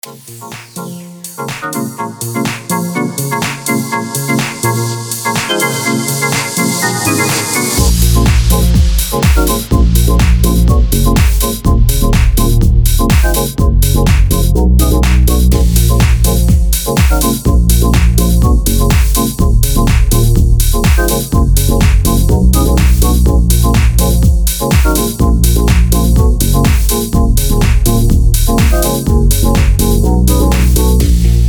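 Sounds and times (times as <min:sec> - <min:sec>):
garage house music: 0:00.0 - 0:31.4.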